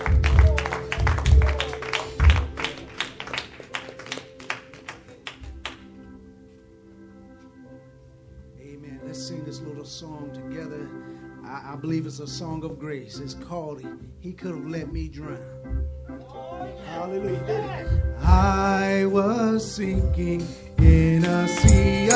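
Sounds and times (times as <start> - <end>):
church congregation clapping as a clap offering: 0.0 - 6.0, 20.8 - 22.1
speech: 11.8 - 15.6, 17.0 - 22.1.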